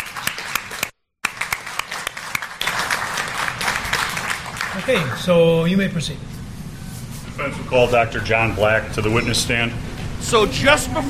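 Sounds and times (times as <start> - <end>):
courtroom round of applause: 0.0 - 5.3
speech: 4.8 - 6.3, 7.4 - 11.0.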